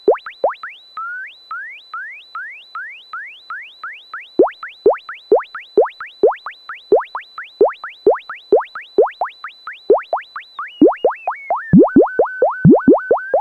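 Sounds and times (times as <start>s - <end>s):
water drops: 4.4s - 6.4s, 7.0s - 8.2s, 9.0s - 9.3s, 9.9s - 10.2s, 10.8s - 13.3s.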